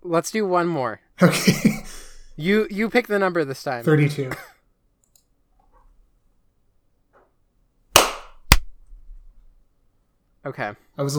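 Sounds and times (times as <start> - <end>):
speech: 0.1 - 4.5, 10.4 - 11.1
laughter: 1.2 - 2.1
hand claps: 8.0 - 8.7.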